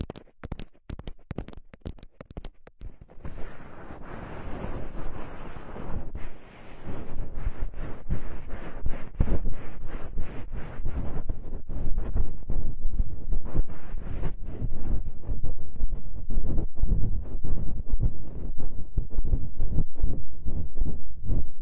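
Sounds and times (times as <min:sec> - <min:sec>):
sharp taps and clicks: 0:00.0 - 0:03.5
small crackles and pops: 0:00.0 - 0:05.0
scratchy ear massage rubbing: 0:00.0 - 0:21.6.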